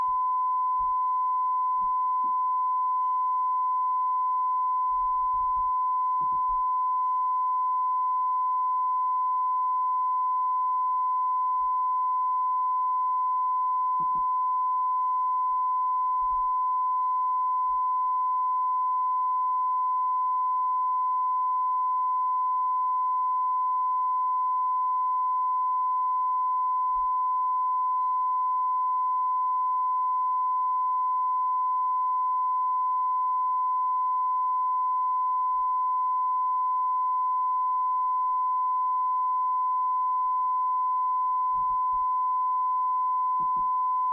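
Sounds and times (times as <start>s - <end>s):
94 dB calibration tone: 0.0s - 44.1s.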